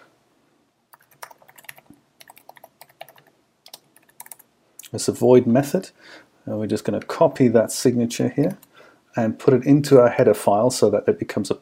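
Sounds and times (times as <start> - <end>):
typing on a computer keyboard: 0.9 - 4.4
speech: 4.9 - 11.5.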